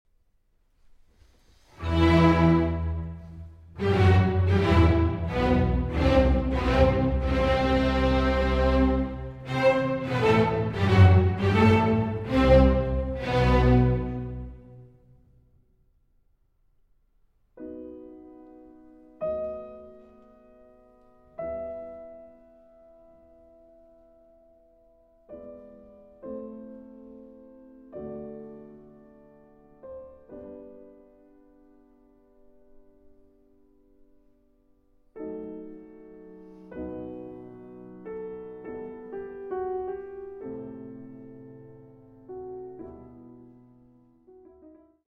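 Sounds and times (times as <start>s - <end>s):
piano concerto slow movement in G major: 1.2s - 15.6s, 17.6s - 45.0s.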